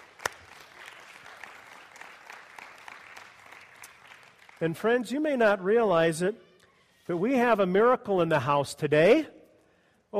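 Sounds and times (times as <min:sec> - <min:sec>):
church congregation applauding during a morning service: 0:00.0 - 0:05.4
speech: 0:04.6 - 0:06.5, 0:07.1 - 0:09.4.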